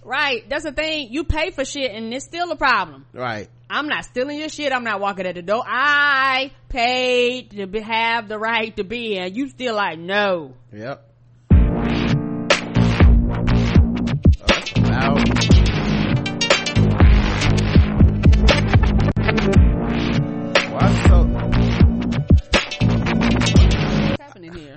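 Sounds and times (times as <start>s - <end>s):
speech: 0.1s - 11.1s
loud music accidentally played from an article: 11.5s - 24.2s.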